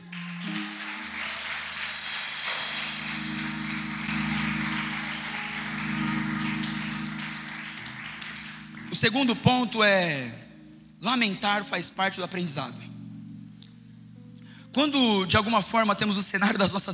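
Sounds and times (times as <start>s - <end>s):
church audience applause: 0.0s - 9.1s
speech: 9.0s - 10.4s, 11.0s - 12.9s, 14.8s - 16.9s.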